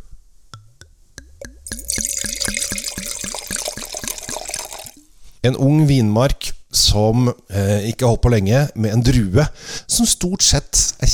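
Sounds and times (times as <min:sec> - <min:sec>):
wine glugging from a bottle into a glass: 0:00.6 - 0:05.1
speech: 0:05.4 - 0:11.1.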